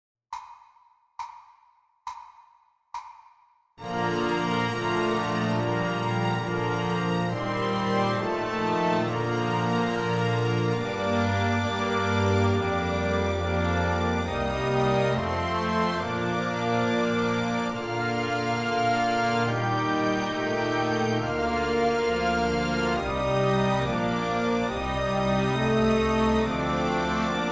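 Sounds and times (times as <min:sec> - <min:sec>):
daily musical warm-up exercise in E: 0:03.8 - 0:27.5.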